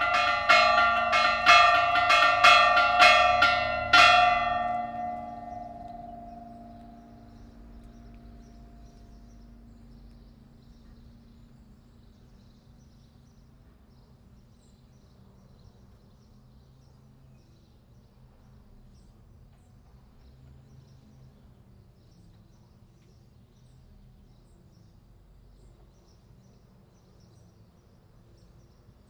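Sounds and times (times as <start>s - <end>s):
bells ringing at LaCorrada: 0.0s - 9.9s.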